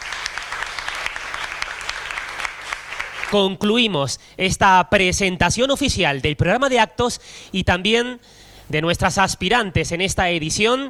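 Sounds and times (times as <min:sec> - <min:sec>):
audience applause: 0:00.0 - 0:03.4
speech: 0:03.3 - 0:10.8.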